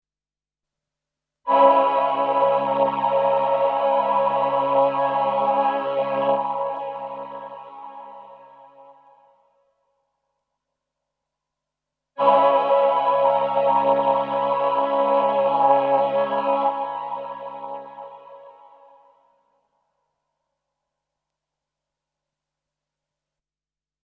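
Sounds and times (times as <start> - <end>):
Roland VP330 and VC340 synthesizer choir with long release: 1.5 - 9.5, 12.2 - 19.4.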